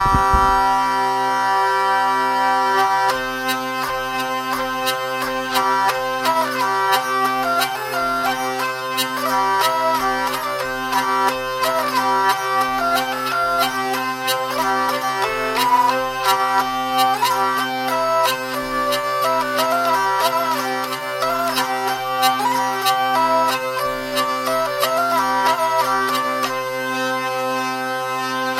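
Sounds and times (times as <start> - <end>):
hurdy-gurdy vielle playing: 0.0 - 28.5.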